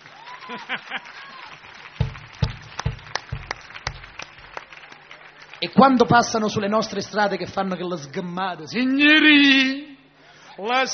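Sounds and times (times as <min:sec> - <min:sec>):
applause: 0:00.0 - 0:06.7
speech: 0:00.5 - 0:01.7, 0:05.6 - 0:09.9, 0:10.6 - 0:10.9.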